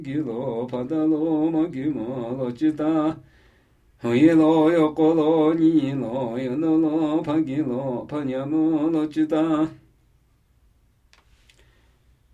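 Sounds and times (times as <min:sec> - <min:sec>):
Namuyi Tibetan ritual chanting: 0:00.0 - 0:03.4, 0:04.0 - 0:09.9.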